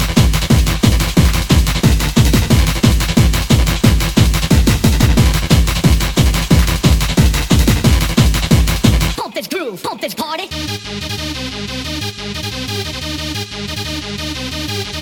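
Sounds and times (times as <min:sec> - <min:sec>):
hardcore gabber music: 0:00.0 - 0:15.0.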